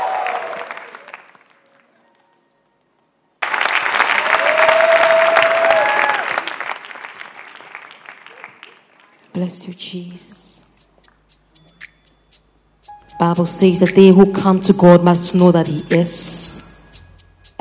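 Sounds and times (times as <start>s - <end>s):
audience clapping and cheering: 0.0s - 2.5s, 3.4s - 9.3s
speech: 9.4s - 10.7s, 13.3s - 16.6s.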